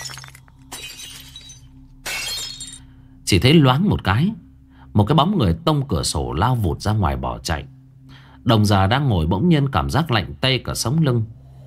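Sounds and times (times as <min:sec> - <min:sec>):
four wall mirrors shattering: 0:00.0 - 0:02.9
speech: 0:03.3 - 0:04.4, 0:05.0 - 0:07.8, 0:08.4 - 0:11.4.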